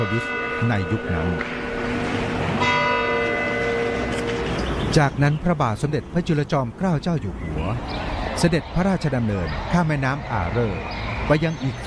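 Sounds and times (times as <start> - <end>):
speech: 0.0 - 2.0, 4.9 - 11.8
astronomical clock tower bell ringing: 0.0 - 4.9.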